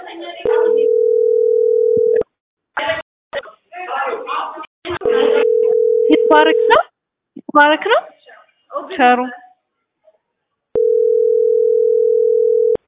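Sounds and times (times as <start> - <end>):
steady electronic telephone tone while calling someone: 0.6 - 2.2, 5.0 - 6.7, 10.8 - 12.8
speech: 7.6 - 8.1, 8.9 - 9.4.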